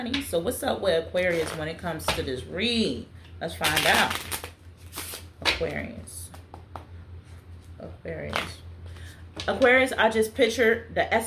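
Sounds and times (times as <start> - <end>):
speech: 0.0 - 4.4, 5.6 - 6.2, 7.8 - 8.6, 9.4 - 11.2
tarot cards being shuffled for a love reading: 3.6 - 5.3.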